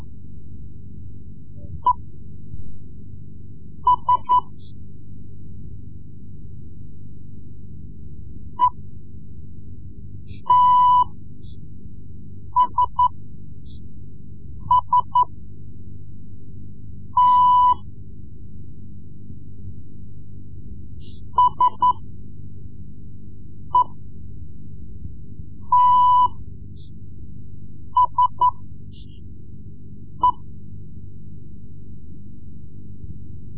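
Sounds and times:
Morse code lessons: 3.9 - 4.6, 10.4 - 11.2, 12.6 - 13.2, 14.6 - 15.3, 17.2 - 17.8, 21.4 - 22.0, 23.8 - 24.0, 25.7 - 26.4, 28.0 - 28.6, 30.2 - 30.4.

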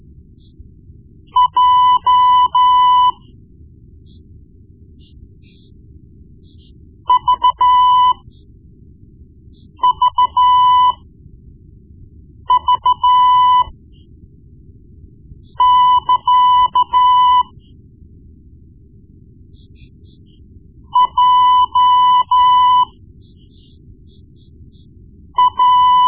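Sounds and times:
morse code beeps: 1.4 - 3.2, 7.1 - 8.2, 9.8 - 11.0, 12.5 - 13.7, 15.6 - 17.6, 21.0 - 23.7, 25.4 - 26.0.

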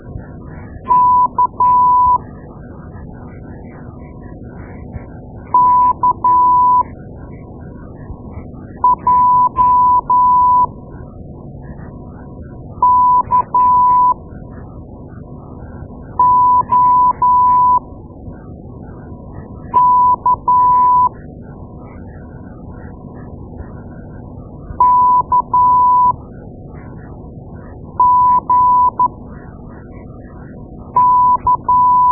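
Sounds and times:
morse code beeps: 0.9 - 2.2, 5.6 - 6.8, 8.8 - 10.7, 12.8 - 14.2, 16.2 - 17.8, 19.8 - 21.1, 24.8 - 26.2, 28.0 - 29.1, 31.0 - 32.1.

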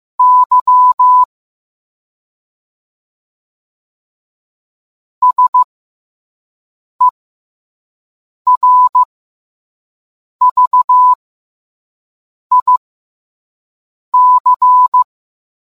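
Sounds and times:
morse code beeps: 0.2 - 1.3, 5.2 - 5.7, 8.5 - 9.1, 10.4 - 11.2, 12.5 - 12.8, 14.2 - 15.1.

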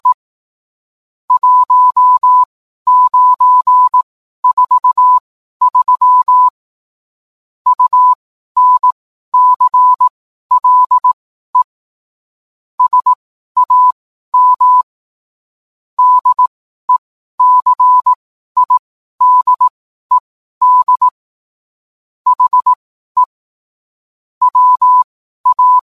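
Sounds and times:
morse code beeps: 1.4 - 6.5, 7.7 - 11.7, 12.8 - 14.9, 16.0 - 21.2, 22.3 - 23.3, 24.4 - 25.9.

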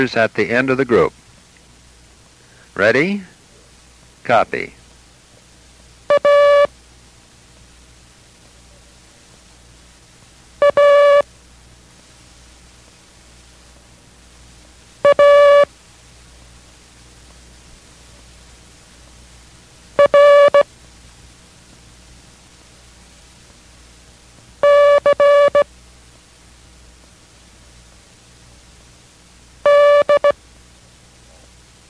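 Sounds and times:
speech: 0.0 - 1.2, 2.8 - 3.3, 4.2 - 4.8
hiss: 0.0 - 31.8
Morse code characters A A A R C D: 6.1 - 6.7, 10.6 - 11.2, 15.0 - 15.7, 20.0 - 20.6, 24.6 - 25.7, 29.6 - 30.4.

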